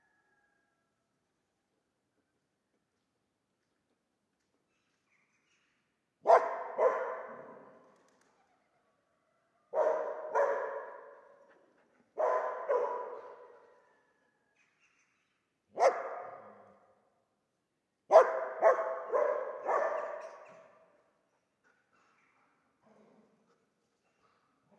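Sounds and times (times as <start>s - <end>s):
dog barking: 6.2s - 7.8s, 9.7s - 11.6s, 12.2s - 13.9s, 15.8s - 16.9s, 18.1s - 21.0s.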